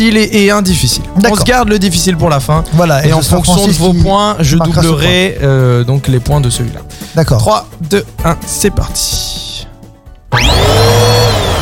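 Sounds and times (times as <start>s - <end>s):
speech: 0.0s - 9.5s
large vacuum cleaner running: 10.3s - 11.6s.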